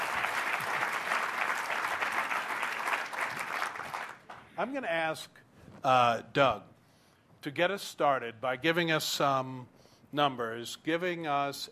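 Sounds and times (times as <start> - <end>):
audience applause welcoming political panel guests: 0.0 - 4.4
speech: 4.6 - 6.7, 7.4 - 11.7.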